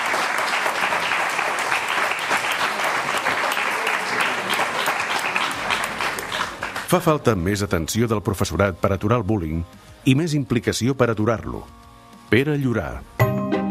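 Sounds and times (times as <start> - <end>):
audience applause: 0.0 - 7.2
speech: 6.9 - 13.1.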